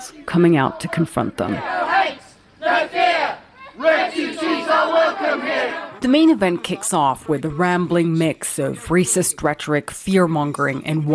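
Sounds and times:
loud crowd of protesters shouting: 0:00.0 - 0:06.0
speech: 0:00.1 - 0:01.8, 0:04.2 - 0:11.1.

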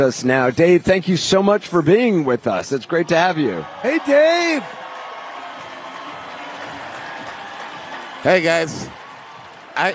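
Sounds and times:
speech: 0:00.0 - 0:04.8, 0:08.2 - 0:09.0, 0:09.8 - 0:09.9
crowd cheering and clapping: 0:02.9 - 0:09.9.

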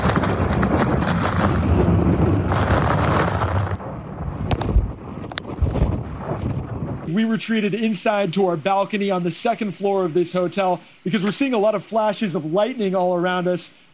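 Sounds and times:
hurricane winds: 0:00.0 - 0:07.3
speech: 0:07.1 - 0:13.8.

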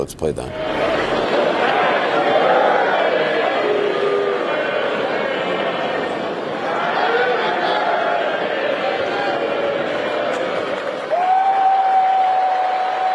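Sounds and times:
crowd singing a birthday song: 0:00.5 - 0:13.1
laughter: 0:00.6 - 0:11.0.

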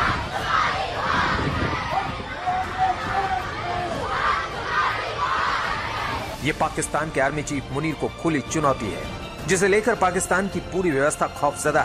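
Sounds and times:
protest crowd chanting in streets: 0:00.0 - 0:06.4
speech: 0:06.4 - 0:11.8.

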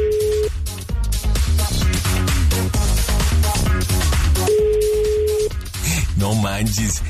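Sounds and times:
phone ringback tone with no answer: 0:00.0 - 0:00.5, 0:04.4 - 0:05.5
busy music playing loudly: 0:00.0 - 0:07.0
speech: 0:06.6 - 0:07.0.

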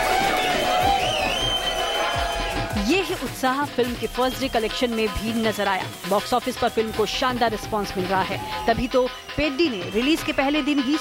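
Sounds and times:
audience whistling and clapping in a theatre: 0:00.0 - 0:08.8
speech: 0:02.8 - 0:11.0.

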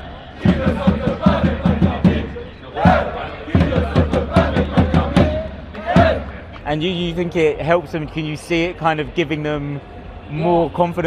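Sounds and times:
loud esports crowd roaring and chanting at LAN: 0:00.0 - 0:06.6
speech: 0:00.6 - 0:01.1, 0:06.7 - 0:11.0.

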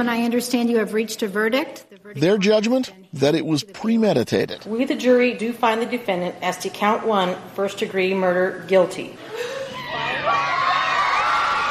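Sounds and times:
speech: 0:00.0 - 0:09.6
crowd outside a courthouse cheering after a murder verdict: 0:09.6 - 0:11.6.

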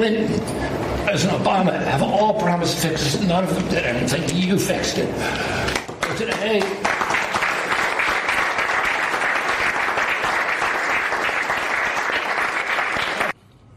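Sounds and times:
speech: 0:00.0 - 0:06.9
audience applause: 0:05.7 - 0:13.4.

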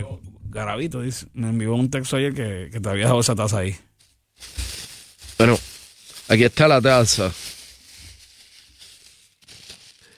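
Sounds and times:
speech: 0:00.0 - 0:04.6, 0:05.4 - 0:05.7, 0:06.3 - 0:07.6
paper and plastic wrapping being pulled open: 0:04.0 - 0:10.1.

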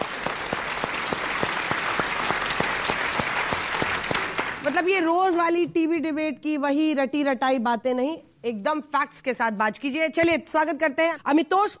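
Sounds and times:
audience applause: 0:00.0 - 0:04.9
speech: 0:04.6 - 0:11.7.

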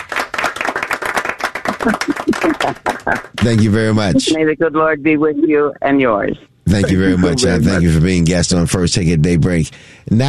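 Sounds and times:
crowd applause: 0:00.0 - 0:04.1
laughter: 0:01.6 - 0:04.4, 0:06.7 - 0:08.3
speech: 0:01.8 - 0:10.2.

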